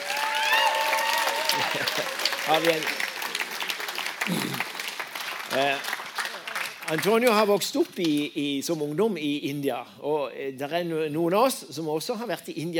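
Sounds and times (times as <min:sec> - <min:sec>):
audience applause: 0:00.0 - 0:07.4
speech: 0:01.6 - 0:03.1, 0:04.3 - 0:04.7, 0:05.5 - 0:05.9, 0:06.9 - 0:12.7.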